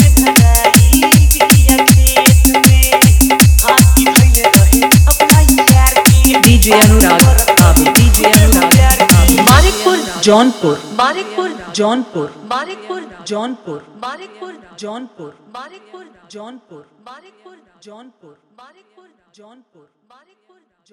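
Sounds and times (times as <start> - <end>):
old Bhojpuri dholak drum music mix: 0.0 - 11.8.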